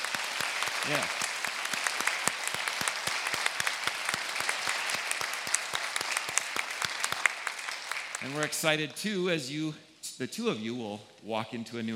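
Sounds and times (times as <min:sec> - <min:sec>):
audience applauding: 0:00.0 - 0:08.8
speech: 0:00.8 - 0:01.2, 0:08.2 - 0:11.9.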